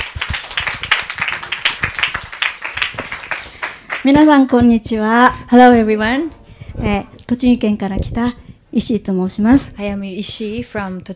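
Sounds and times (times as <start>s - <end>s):
audience applause welcoming a speaker: 0.0s - 4.1s
speech: 4.0s - 11.1s.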